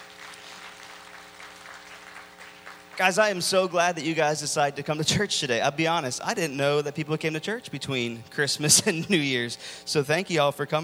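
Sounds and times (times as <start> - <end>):
church congregation clapping in thanks after a performance: 0.0 - 3.7
speech: 3.0 - 10.8.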